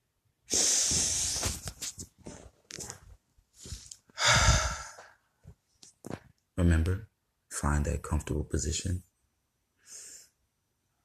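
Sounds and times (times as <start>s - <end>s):
deep breaths: 0.5s - 1.6s, 3.5s - 5.5s, 9.8s - 10.4s
speech: 6.6s - 9.1s.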